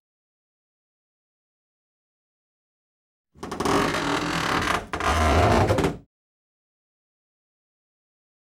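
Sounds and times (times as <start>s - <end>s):
large wood creaking: 3.4s - 6.0s.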